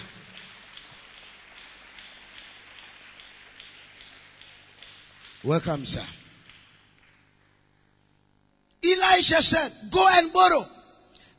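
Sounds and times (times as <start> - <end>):
crowd applause: 0.0 - 7.9
speech: 5.4 - 6.2, 9.2 - 10.7.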